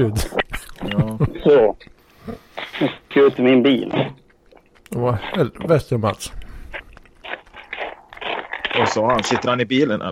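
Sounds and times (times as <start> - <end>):
speech: 0.0 - 1.9, 2.8 - 4.2, 4.9 - 6.4, 8.8 - 10.1
smacking and chewing while eating: 0.4 - 1.0, 4.2 - 5.7, 6.3 - 9.3.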